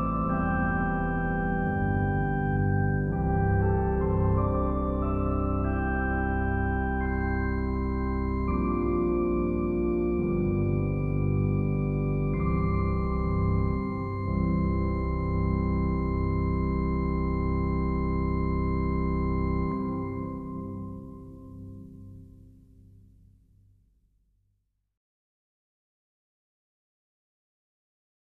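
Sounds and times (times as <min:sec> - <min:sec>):
organ postlude: 0:00.0 - 0:22.2.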